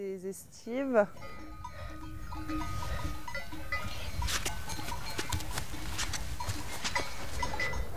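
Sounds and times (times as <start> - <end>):
flock's bells clinking and jangling: 0.0 - 7.9
low busy rumble of shuffling animals: 2.4 - 7.9.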